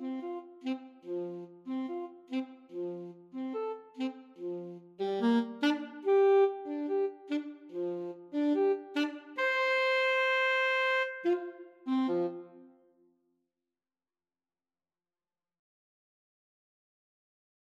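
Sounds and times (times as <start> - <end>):
alto saxophone playing an opera aria: 0.0 - 12.8.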